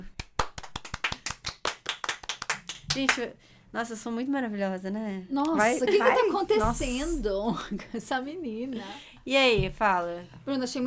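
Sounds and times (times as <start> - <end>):
hands clapping: 0.0 - 3.3
speech: 3.0 - 10.8.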